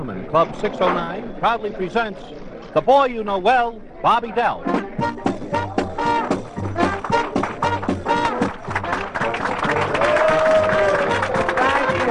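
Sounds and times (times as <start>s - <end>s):
speech: 0.0s - 5.2s
crowd applause: 5.7s - 12.0s.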